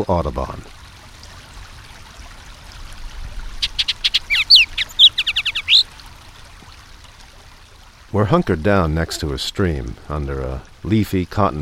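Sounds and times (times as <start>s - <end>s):
speech: 0.0s - 0.8s, 8.1s - 11.5s
loud bird song, whistles and guttural chuckles: 3.7s - 5.8s.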